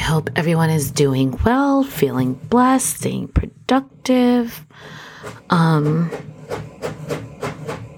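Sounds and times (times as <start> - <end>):
speech: 0.1 - 7.3
printer printing: 2.0 - 7.9.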